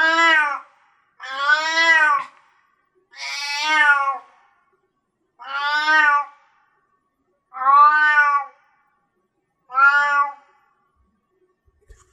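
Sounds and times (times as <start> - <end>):
cat meowing: 0.0 - 2.3, 3.1 - 4.3, 5.4 - 6.4, 7.5 - 8.6, 9.7 - 10.5.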